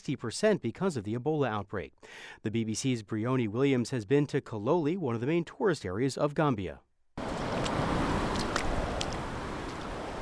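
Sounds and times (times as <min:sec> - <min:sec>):
speech: 0:00.0 - 0:06.9
waves rushing along the sand on Senegambia Beach: 0:07.2 - 0:10.2.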